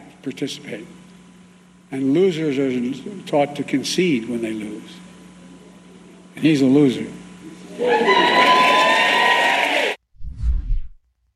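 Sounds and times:
speech: 0.2s - 1.0s, 1.9s - 5.0s, 6.4s - 7.2s, 7.8s - 8.7s
crowd whooping and cheering: 7.7s - 10.0s
low rumble: 10.2s - 11.0s.

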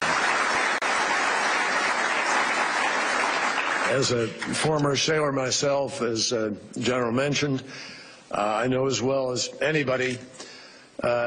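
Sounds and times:
audience applause: 0.0s - 4.4s
speech: 3.9s - 10.4s, 11.0s - 11.2s.

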